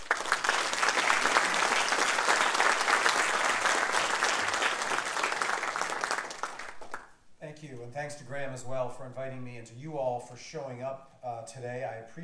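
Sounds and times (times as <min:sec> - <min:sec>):
audience applause welcoming a history lecturer at a museum talk: 0:00.0 - 0:07.1
speech: 0:08.0 - 0:12.2.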